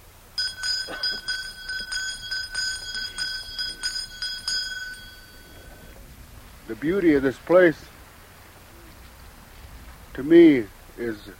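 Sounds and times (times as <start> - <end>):
handheld bell ringing: 0.4 - 6.1
speech: 6.7 - 7.9, 10.2 - 11.3.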